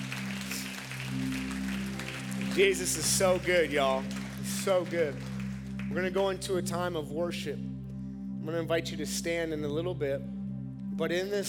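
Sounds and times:
audience clapping: 0:00.0 - 0:06.5
speech: 0:02.6 - 0:05.3, 0:05.9 - 0:07.7, 0:08.4 - 0:10.3, 0:11.0 - 0:11.4.

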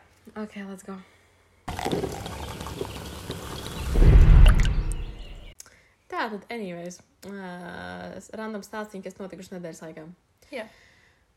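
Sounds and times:
speech: 0:00.3 - 0:01.2, 0:06.2 - 0:10.9
liquid pouring into a glass: 0:01.7 - 0:05.5.

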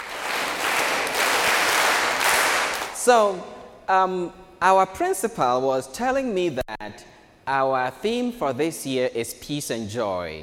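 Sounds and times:
group clapping: 0:00.0 - 0:03.0
speech: 0:03.1 - 0:10.4.

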